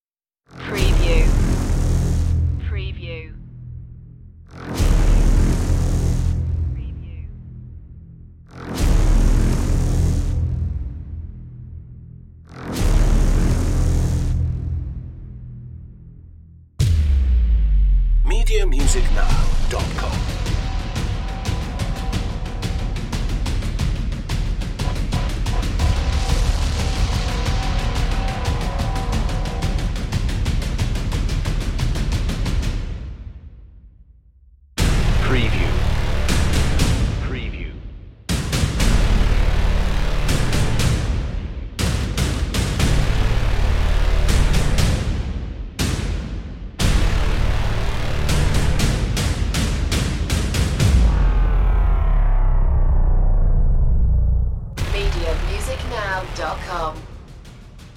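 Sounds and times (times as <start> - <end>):
hybrid trailer blares: 0.5 - 57.9
drums: 16.8 - 33.6, 34.8 - 52.4, 54.7 - 57.9.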